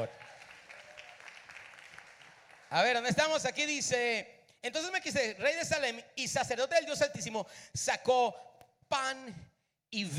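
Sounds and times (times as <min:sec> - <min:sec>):
speech: 0:00.0 - 0:00.2, 0:02.7 - 0:10.1
applause: 0:00.0 - 0:03.4.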